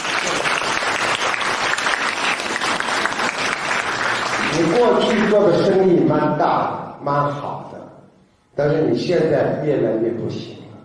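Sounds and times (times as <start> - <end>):
audience applause: 0.0 - 5.4
speech: 4.6 - 7.6, 8.6 - 10.6.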